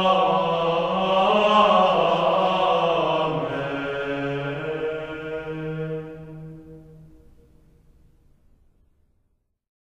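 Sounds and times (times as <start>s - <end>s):
Gregorian chant: 0.0s - 7.4s.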